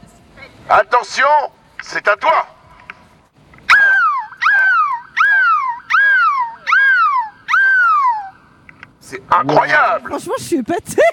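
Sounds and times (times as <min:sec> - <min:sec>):
speech: 0:00.7 - 0:02.6, 0:09.1 - 0:11.1
person imitating seagull cries: 0:03.7 - 0:08.5.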